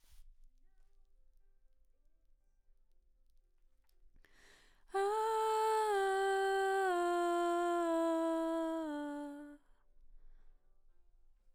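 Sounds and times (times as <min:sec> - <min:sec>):
background vocals: 0:04.9 - 0:09.6.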